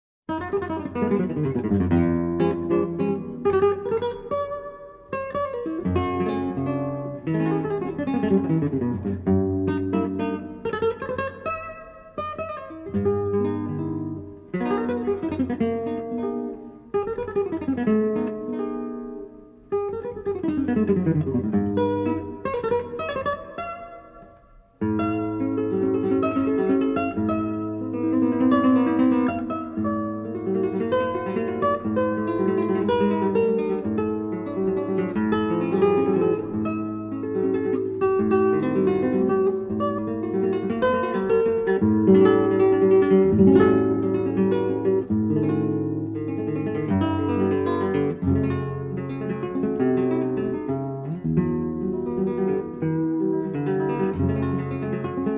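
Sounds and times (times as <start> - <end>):
guitar: 0.3 - 55.3.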